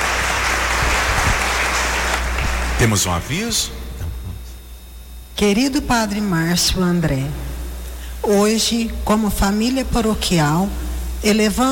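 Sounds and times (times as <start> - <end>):
applause for a deacon at a church service: 0.0 - 3.2
speech: 2.8 - 3.8, 5.4 - 7.5, 8.2 - 11.6.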